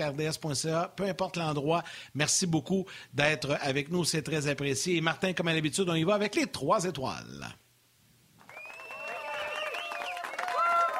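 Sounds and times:
speech: 0.0s - 7.6s
applause from a small crowd: 8.4s - 10.9s
high cheering and whooping voices from a small crowd: 8.5s - 10.9s.

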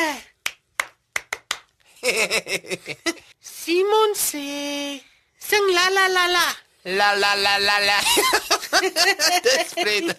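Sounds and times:
hands clapping: 0.4s - 1.9s
speech: 2.2s - 10.1s
laughter: 8.0s - 10.1s.

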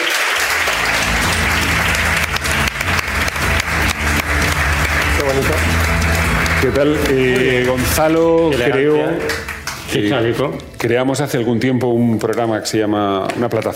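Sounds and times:
audience applause: 0.0s - 10.2s
speech: 6.6s - 13.7s.

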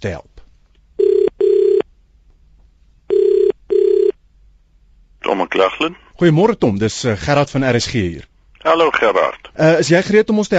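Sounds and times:
speech: 0.0s - 0.3s, 5.3s - 10.5s
telephone ringing as a radio presenter calls a guest: 1.0s - 1.8s, 3.1s - 4.2s.

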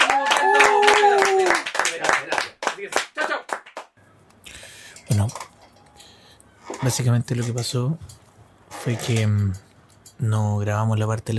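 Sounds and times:
applause, hands clapping: 0.0s - 4.0s
speech: 6.8s - 8.2s, 8.8s - 11.3s.

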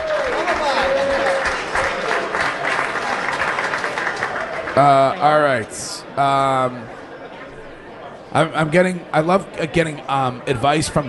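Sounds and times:
crowd clapping: 0.0s - 5.5s
speech: 4.8s - 7.0s, 8.3s - 11.0s.

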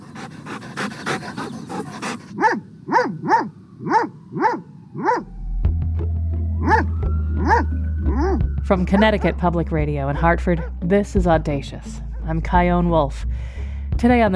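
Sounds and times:
dog barking loud mid-pitched woofs: 2.4s - 5.3s, 6.6s - 8.4s
low steady hum: 5.0s - 14.3s
speech: 8.7s - 14.3s.

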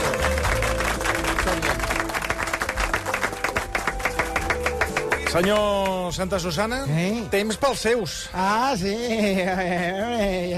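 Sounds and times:
audience applause: 0.0s - 6.1s
speech: 5.3s - 10.5s.

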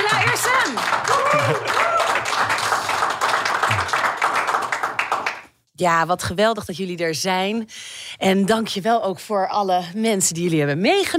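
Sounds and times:
cheer: 0.0s - 2.9s
audience applause: 0.0s - 5.5s
speech: 5.8s - 11.1s.

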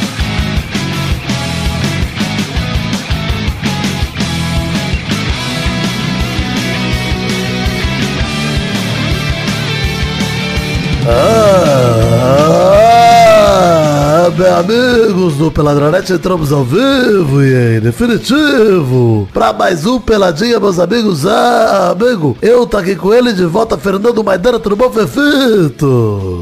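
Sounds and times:
upbeat music: 0.0s - 26.4s
loud exaggerated moaning voice: 11.0s - 14.5s, 25.8s - 26.4s
speech: 14.4s - 26.4s.

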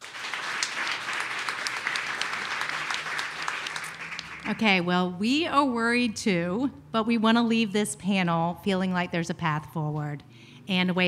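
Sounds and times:
crowd applauding: 0.0s - 4.8s
speech: 4.4s - 11.0s.

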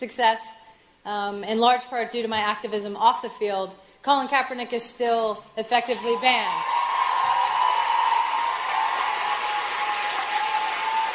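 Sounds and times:
speech: 0.0s - 6.8s
audience applause: 6.7s - 11.1s.

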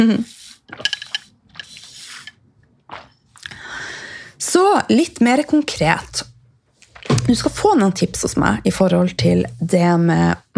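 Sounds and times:
speech: 0.0s - 0.9s, 4.7s - 6.3s, 7.3s - 10.5s
person slurping sips of lemon water: 0.0s - 2.4s.

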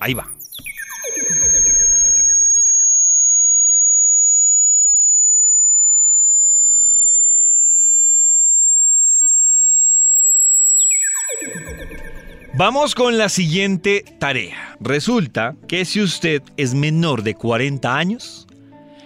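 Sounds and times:
speech: 0.0s - 0.4s, 12.6s - 18.5s
high-pitched hearing test tone: 0.3s - 12.8s.

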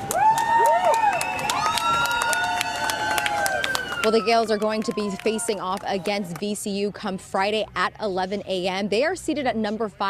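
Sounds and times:
fans cheering as team bus departs: 0.0s - 6.6s
speech: 4.0s - 10.0s.

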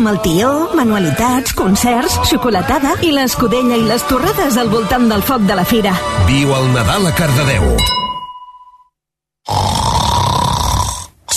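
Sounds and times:
speech: 0.0s - 8.0s
person snoring while asleep: 9.4s - 11.3s.

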